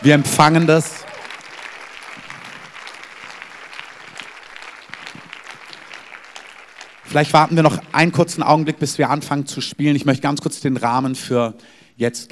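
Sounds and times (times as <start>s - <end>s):
speech: 0.0s - 1.0s, 7.1s - 12.3s
audience applause in church service: 0.0s - 8.8s.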